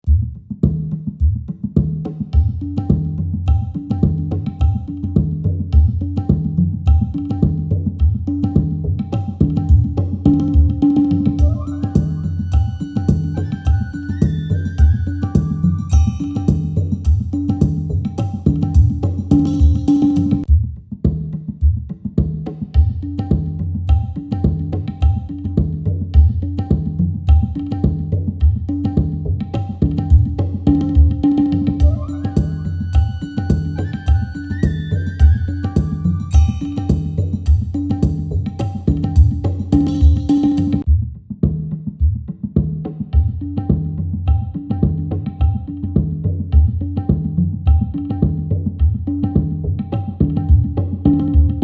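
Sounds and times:
tablas: 0.0s - 51.6s.

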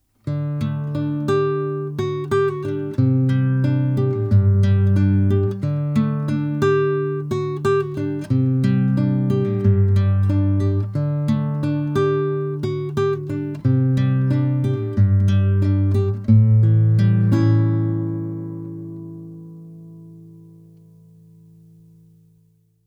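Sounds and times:
classical guitar through SPL Channel One MKIII with compression and EQ: 0.0s - 22.8s.

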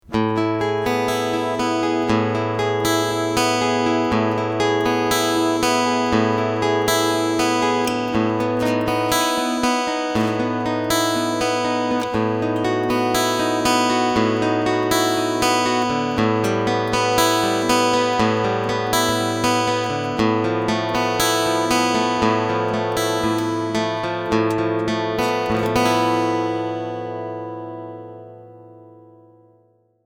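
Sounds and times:
clean guitar picking line: 0.0s - 29.6s.

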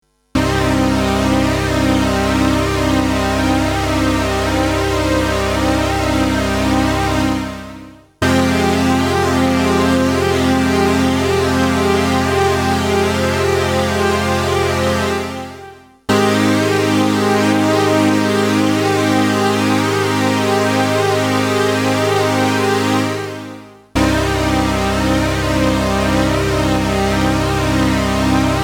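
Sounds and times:
Boss CE-300 chorus effect: 0.4s - 28.6s.

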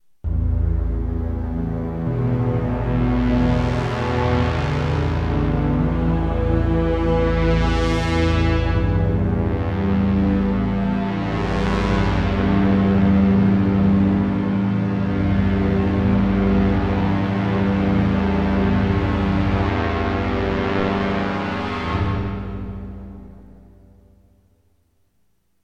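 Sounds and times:
synth pad: 0.2s - 24.6s.

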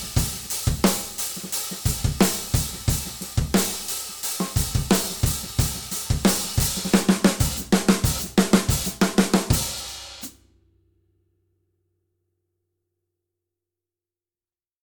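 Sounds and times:
dual hi-hat: 0.0s - 10.3s.

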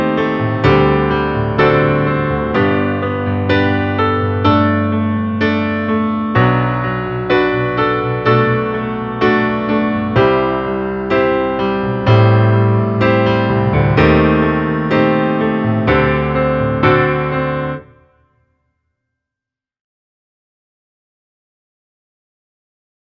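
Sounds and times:
studio grand piano ballad: 0.0s - 18.1s.

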